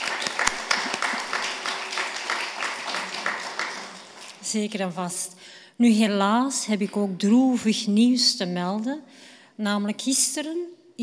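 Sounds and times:
church congregation applause: 0:00.0 - 0:04.6
speech: 0:04.5 - 0:11.0.

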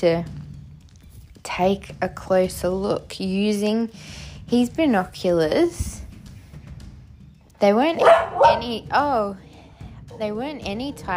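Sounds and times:
speech: 0:00.0 - 0:00.4, 0:01.4 - 0:06.0, 0:07.6 - 0:09.4, 0:10.2 - 0:11.1
dog barking: 0:07.9 - 0:08.9.

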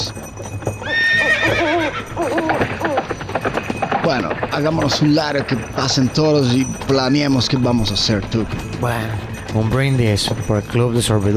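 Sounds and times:
horses neighing: 0:00.0 - 0:10.2
hooves clip-clopping: 0:00.0 - 0:11.3
speech: 0:04.1 - 0:11.3.

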